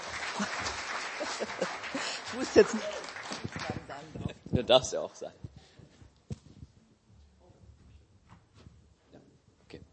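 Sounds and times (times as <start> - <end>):
audience clapping: 0.0 - 4.2
laughter: 0.2 - 3.2
speech: 2.4 - 3.0, 4.6 - 5.4.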